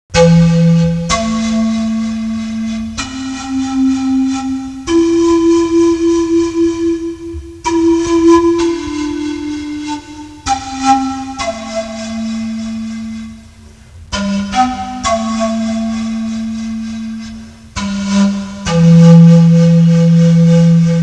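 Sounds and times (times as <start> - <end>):
instrumental music: 0.1 - 21.0.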